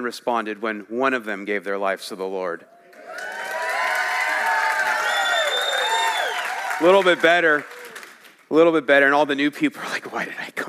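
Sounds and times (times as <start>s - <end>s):
speech: 0.0s - 2.8s, 6.8s - 7.8s, 8.5s - 10.6s
high whoops and shouts from many voices: 2.9s - 7.0s
audience applause: 3.0s - 8.4s.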